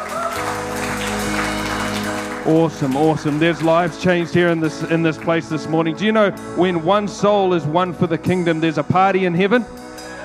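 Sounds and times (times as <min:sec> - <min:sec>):
audience hand clapping: 0:00.0 - 0:05.5
speech: 0:02.4 - 0:09.8.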